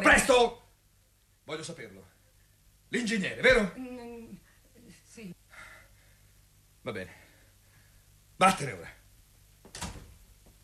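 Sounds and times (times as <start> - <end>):
speech: 0.2 - 0.6, 1.5 - 2.2, 2.9 - 4.4, 5.2 - 5.4, 6.8 - 7.2, 8.4 - 9.0
door closing with soft thud: 9.6 - 10.2.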